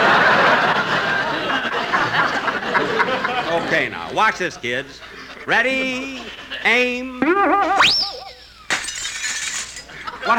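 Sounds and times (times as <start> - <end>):
laughter: 0.0 - 8.7, 9.8 - 10.3
speech: 3.8 - 8.2
wobbly whistling tone: 7.2 - 8.5
arrow shattering a glass window: 8.7 - 10.0.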